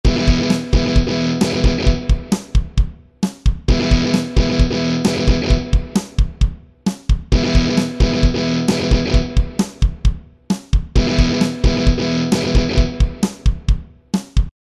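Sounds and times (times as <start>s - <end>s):
guitar: 0.0s - 2.9s, 3.5s - 6.5s, 7.2s - 13.8s.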